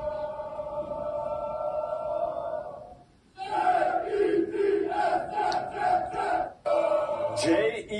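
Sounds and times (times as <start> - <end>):
loud crowd of fans chanting in unison: 0.0 - 7.5.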